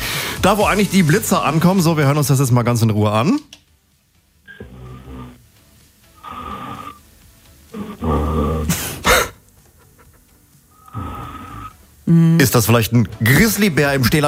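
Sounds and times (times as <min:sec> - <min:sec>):
speech: 0:00.4 - 0:03.6, 0:12.1 - 0:14.2
person snoring over a telephone line: 0:04.5 - 0:05.5, 0:06.2 - 0:07.1, 0:07.7 - 0:08.8, 0:10.7 - 0:11.8.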